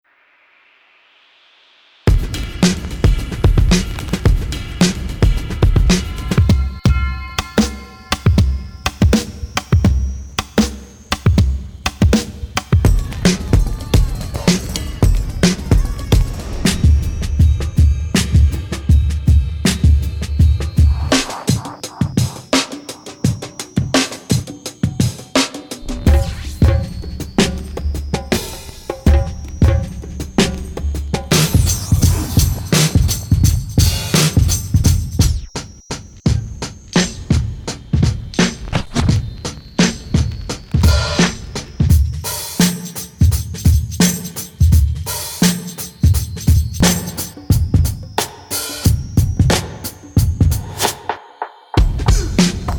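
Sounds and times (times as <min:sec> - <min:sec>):
drum breaks: 0:02.1 - 0:51.2, 0:51.8 - 0:52.7.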